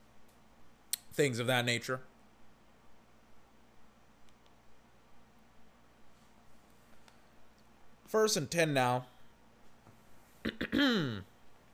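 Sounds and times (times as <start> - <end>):
speech: 1.2 - 2.1, 8.1 - 9.1
man clearing throat: 10.4 - 11.3.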